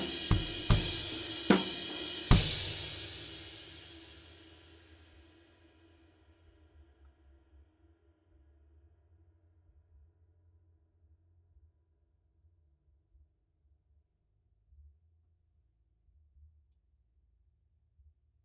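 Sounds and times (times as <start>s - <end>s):
drums: 0.0s - 4.7s.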